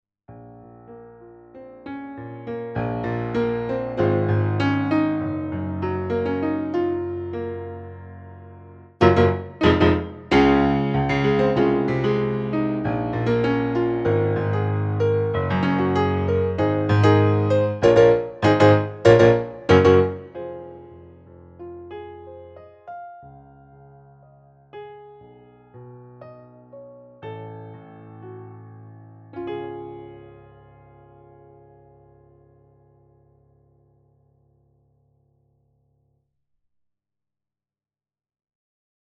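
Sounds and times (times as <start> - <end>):
piano: 0.3 - 36.2.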